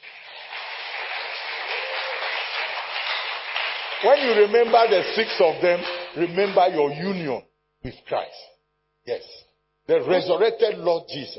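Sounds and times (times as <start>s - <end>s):
audience applause: 0.0s - 7.0s
speech: 4.0s - 11.3s.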